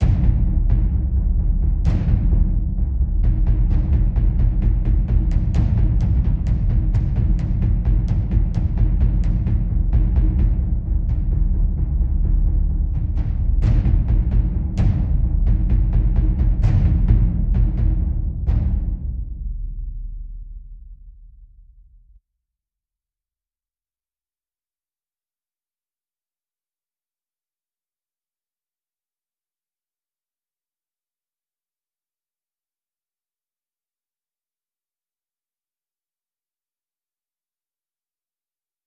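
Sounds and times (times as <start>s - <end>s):
deep drums loop: 0.0s - 19.8s.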